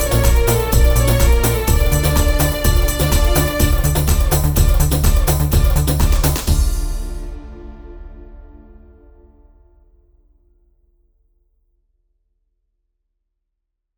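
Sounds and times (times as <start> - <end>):
dance mix: 0.0 - 7.4.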